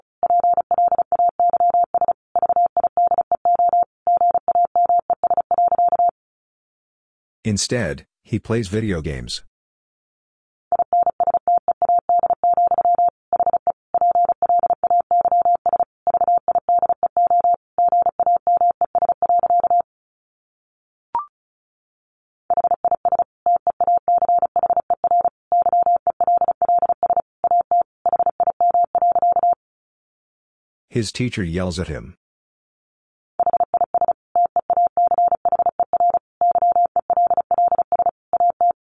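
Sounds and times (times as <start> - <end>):
fast Morse code tone at 35 words per minute: 0.2 - 6.1, 10.7 - 19.8, 22.5 - 29.6, 33.4 - 38.9
speech: 7.4 - 9.5, 31.0 - 32.2.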